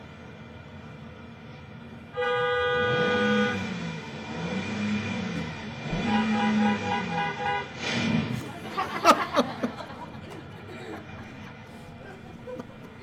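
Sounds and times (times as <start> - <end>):
traffic rumble: 0.0 - 13.0
car horn honking: 2.1 - 3.9, 5.8 - 8.0
laughter: 8.4 - 13.0.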